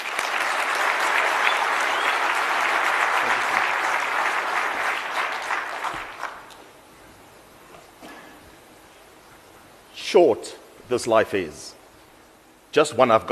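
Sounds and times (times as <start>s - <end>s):
round of applause from a crowd: 0.0s - 6.5s
speech: 10.1s - 11.7s, 12.7s - 13.2s.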